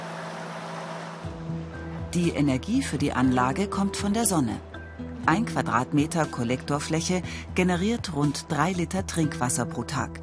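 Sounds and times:
ventilator fan running: 0:00.0 - 0:01.3
speech: 0:02.1 - 0:10.2.

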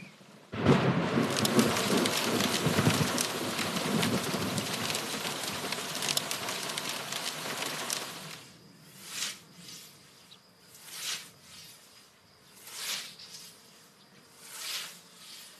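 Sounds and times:
heavy rain: 0:00.5 - 0:08.4
thunder rumbling: 0:00.5 - 0:08.4.

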